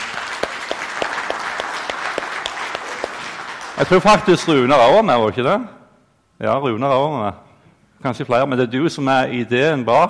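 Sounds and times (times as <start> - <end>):
applause: 0.0 - 4.9
speech: 3.8 - 5.8, 6.4 - 7.4, 8.0 - 10.0.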